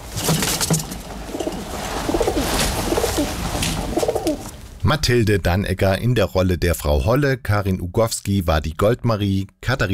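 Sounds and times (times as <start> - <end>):
pigeons cooing: 1.3 - 4.6
speech: 4.9 - 9.9.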